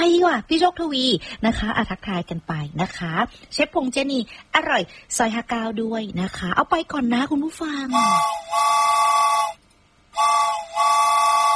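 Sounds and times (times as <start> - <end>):
speech: 0.3 - 9.6
loud high-pitched train whistle blasts: 7.9 - 11.5.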